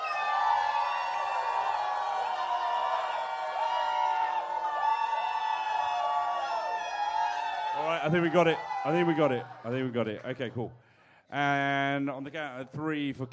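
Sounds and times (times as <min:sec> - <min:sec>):
whoops: 0:00.0 - 0:08.9
crowd shouting a name: 0:00.0 - 0:09.8
speech: 0:07.9 - 0:13.3.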